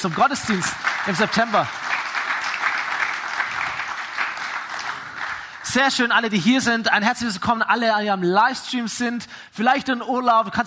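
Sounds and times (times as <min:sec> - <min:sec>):
speech: 0:00.0 - 0:01.9, 0:05.7 - 0:10.6
audience applause: 0:00.0 - 0:05.7.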